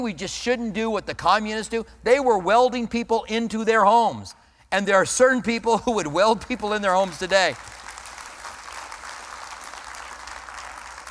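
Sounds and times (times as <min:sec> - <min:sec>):
speech: 0:00.0 - 0:07.8
crowd applause: 0:07.5 - 0:11.0.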